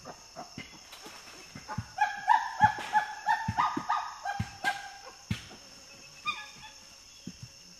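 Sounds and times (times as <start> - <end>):
common chimpanzee screams: 1.7 - 5.2, 6.3 - 6.8.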